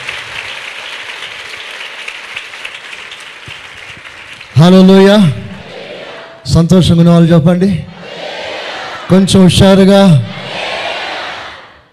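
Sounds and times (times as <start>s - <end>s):
church congregation clapping in praise: 0.0s - 6.2s
speech: 4.6s - 5.4s, 6.4s - 7.9s, 9.1s - 10.3s.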